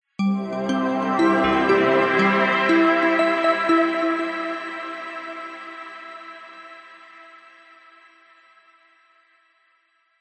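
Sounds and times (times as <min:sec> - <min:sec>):
warm positive arpeggiated multimedia musical logo ident: 0:00.3 - 0:04.9.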